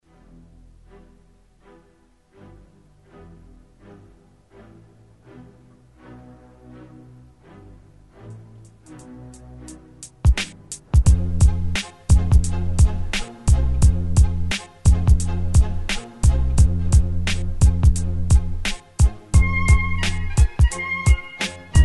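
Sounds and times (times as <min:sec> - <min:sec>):
beats: 0:10.2 - 0:21.8.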